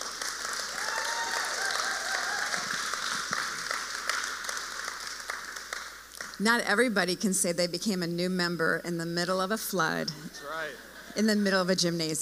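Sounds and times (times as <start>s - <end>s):
crowd applauding for new members: 0.0s - 6.4s
speech: 6.4s - 12.2s.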